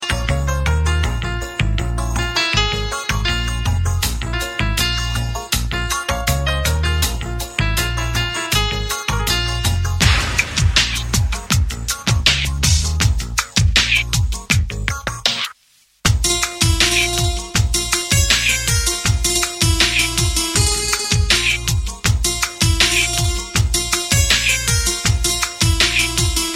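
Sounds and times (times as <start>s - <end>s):
instrumental music: 0.0s - 15.5s, 16.1s - 26.5s.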